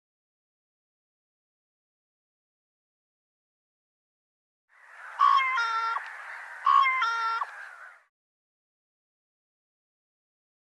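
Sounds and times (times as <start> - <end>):
bird calling: 4.7 - 8.1.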